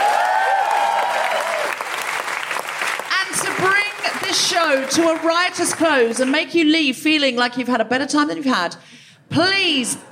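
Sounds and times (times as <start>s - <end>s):
audience applause: 0.0s - 6.4s
speech: 4.4s - 10.1s.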